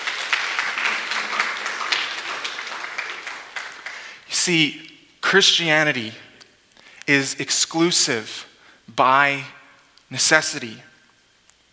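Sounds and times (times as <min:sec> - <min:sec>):
audience applause: 0:00.0 - 0:04.2
speech: 0:04.4 - 0:06.2, 0:07.1 - 0:10.9.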